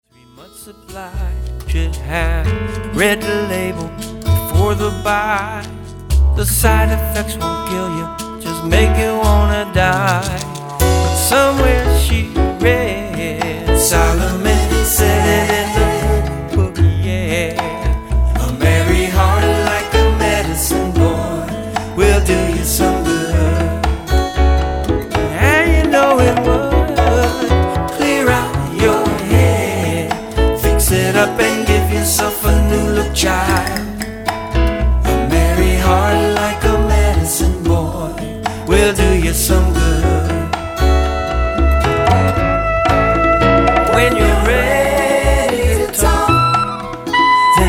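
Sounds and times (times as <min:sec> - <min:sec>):
world folk remix music: 0:01.4 - 0:47.6.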